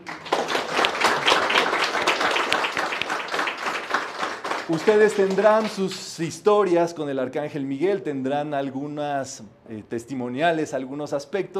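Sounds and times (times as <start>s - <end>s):
audience applause: 0.0s - 6.0s
speech: 4.7s - 11.5s.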